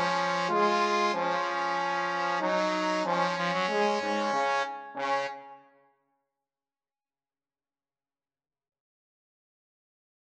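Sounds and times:
trombone duet: 0.0s - 5.6s.

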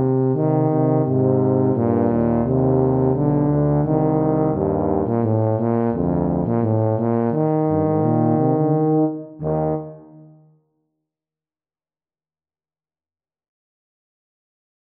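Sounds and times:
tuba duet: 0.0s - 10.5s.

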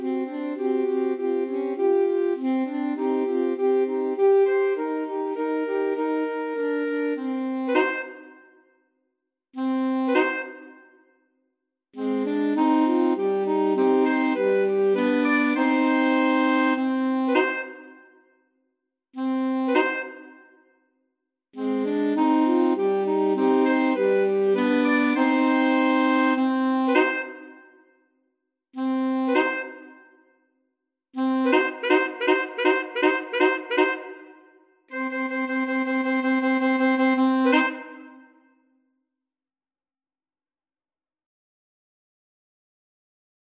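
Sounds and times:
alto saxophone trio playing a classical piece: 0.0s - 8.4s, 9.6s - 10.7s, 12.0s - 17.9s, 19.2s - 20.4s, 21.6s - 27.6s, 28.8s - 30.0s, 31.2s - 38.3s.

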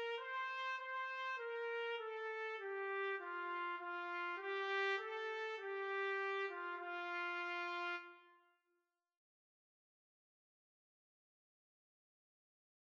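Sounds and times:
trumpet duet: 0.0s - 8.4s.

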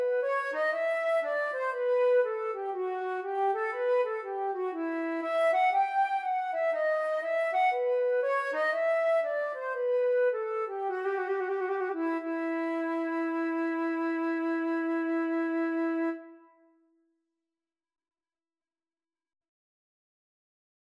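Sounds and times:
bouree for flute and cello duet: 0.0s - 16.4s.

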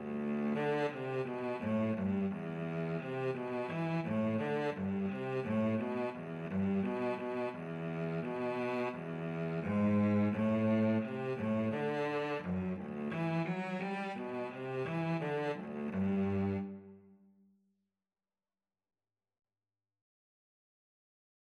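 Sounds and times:
hornpipe played by a viola and cello duet: 0.0s - 17.1s.

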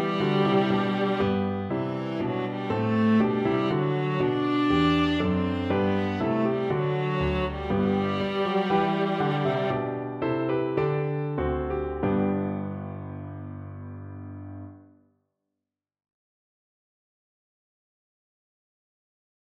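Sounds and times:
viola piece: 0.0s - 14.7s.

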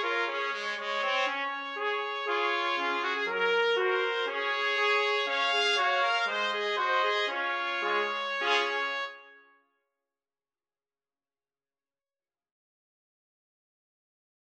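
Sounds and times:
trumpet quartet playing: 0.0s - 9.3s.

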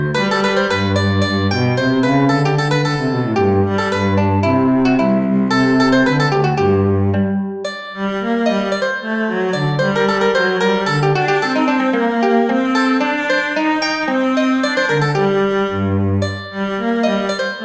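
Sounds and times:
cello in mandolin and cello duet: 0.0s - 17.6s
mandolin in mandolin and cello duet: 0.0s - 17.6s.

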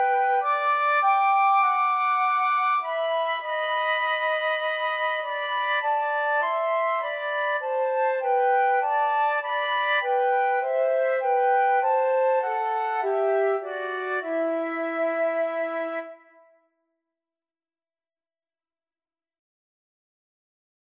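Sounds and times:
flute trio: 0.0s - 16.4s.

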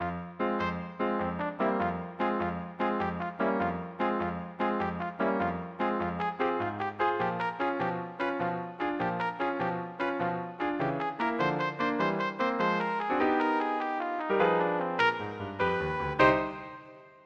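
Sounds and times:
trumpet: 0.0s - 17.2s.

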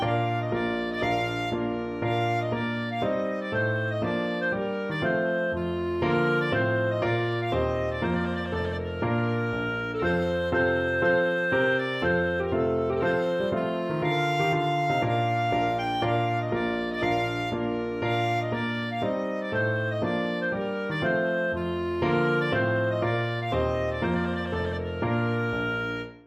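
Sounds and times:
trumpet tune: 0.0s - 26.2s.

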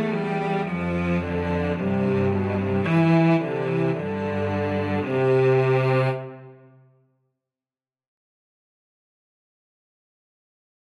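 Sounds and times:
string ensemble: 0.0s - 6.8s.

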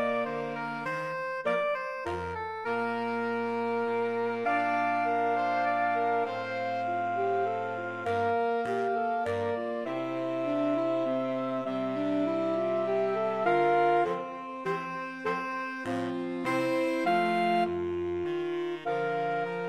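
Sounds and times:
saxophone quartet playing a minuet: 0.0s - 19.6s.

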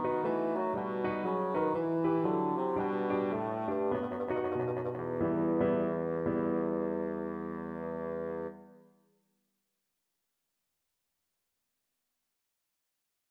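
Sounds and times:
bassoon playing a bourree: 0.0s - 8.8s.

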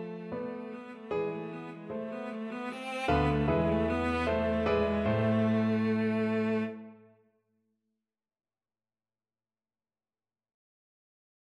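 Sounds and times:
cello duet: 0.0s - 7.1s.

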